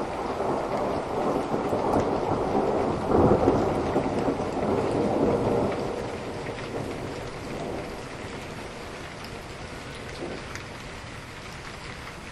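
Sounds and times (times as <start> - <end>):
thunder: 0.0 - 9.0, 9.9 - 10.6
rain: 0.0 - 12.3.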